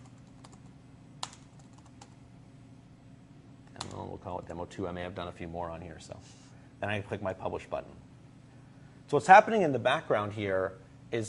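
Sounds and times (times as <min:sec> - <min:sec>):
typing on a computer keyboard: 0:00.0 - 0:02.2
low steady hum: 0:00.0 - 0:11.2
speech: 0:04.2 - 0:08.1, 0:09.1 - 0:11.2.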